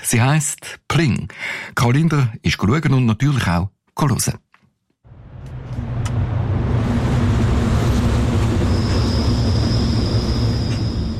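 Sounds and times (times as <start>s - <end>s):
speech: 0.1s - 4.4s
street and tram noise outside the Museum für Gestaltung, Toni-Areal, Zürich: 5.1s - 11.1s
tram wheel squeal: 7.8s - 11.1s.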